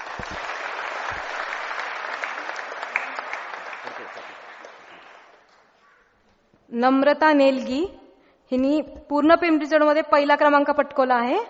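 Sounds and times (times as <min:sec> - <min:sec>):
audience applause for a first-place award announcement: 0:00.0 - 0:05.5
speech: 0:00.2 - 0:00.5, 0:06.7 - 0:11.4.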